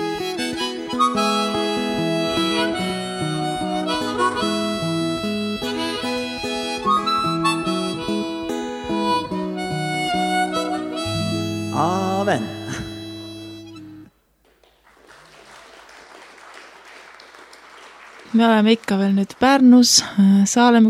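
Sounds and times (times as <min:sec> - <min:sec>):
harmonica being played: 0:00.0 - 0:14.1
speech: 0:12.3 - 0:12.5, 0:18.4 - 0:20.8.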